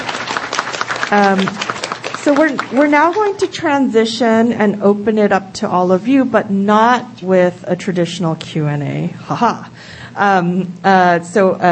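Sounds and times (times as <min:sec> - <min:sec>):
audience applause: 0:00.0 - 0:03.5
speech: 0:01.1 - 0:01.6, 0:02.2 - 0:11.7.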